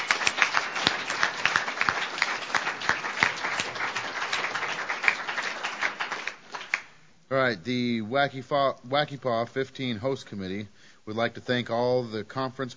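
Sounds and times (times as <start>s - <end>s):
audience applause for speakers: 0.0s - 6.9s
speech: 7.4s - 12.7s.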